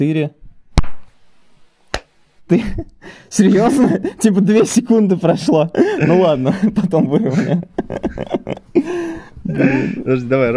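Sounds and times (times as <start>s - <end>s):
speech: 0.0s - 0.4s, 2.5s - 10.5s
sharp hand claps: 1.9s - 2.1s
laughter: 2.5s - 10.3s.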